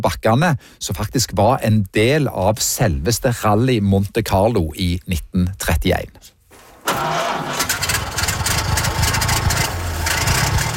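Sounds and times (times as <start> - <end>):
speech: 0.0 - 6.4
vintage car engine running on hill: 7.0 - 10.7.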